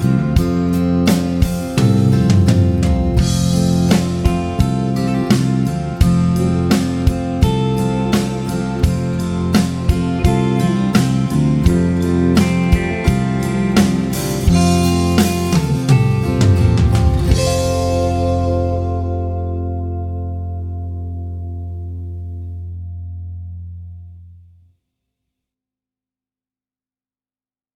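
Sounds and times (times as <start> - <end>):
triad vamp in F major: 0.0 - 24.2.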